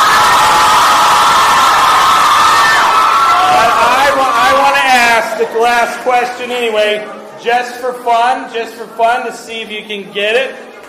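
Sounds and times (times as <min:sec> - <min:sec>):
children cheering: 0:00.0 - 0:04.8
speech: 0:05.4 - 0:10.7.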